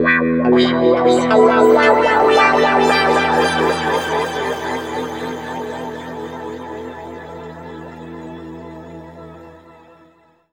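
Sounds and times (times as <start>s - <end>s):
guitar with pitch shift and wah effect in E: 0.0s - 7.8s.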